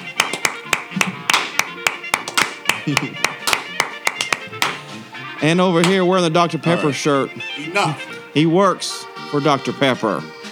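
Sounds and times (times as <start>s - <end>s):
audience hand clapping: 0.0s - 5.2s, 5.8s - 6.1s
laughter: 0.1s - 10.0s
speech: 2.9s - 3.3s, 5.4s - 10.4s.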